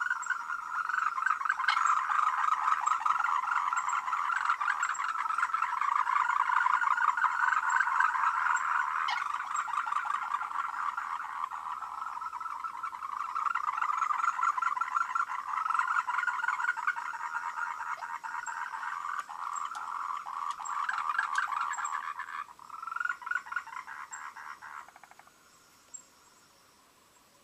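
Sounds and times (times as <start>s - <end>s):
frogs calling in a dense chorus of overlapping croaks: 0.0s - 27.4s.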